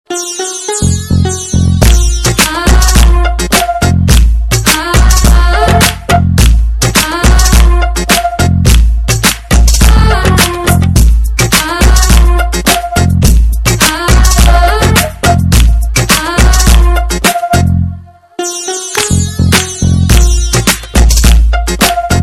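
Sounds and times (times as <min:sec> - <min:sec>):
DJ music: 0:00.1 - 0:17.8, 0:18.4 - 0:22.2.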